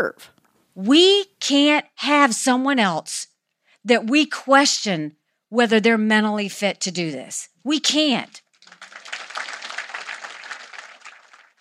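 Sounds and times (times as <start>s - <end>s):
speech: 0.0s - 8.4s
rally audience applause: 8.6s - 11.6s.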